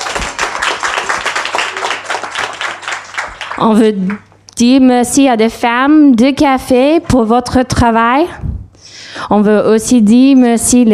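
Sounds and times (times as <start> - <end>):
audience applause: 0.0 - 4.2
speech: 3.6 - 8.5, 9.2 - 10.9.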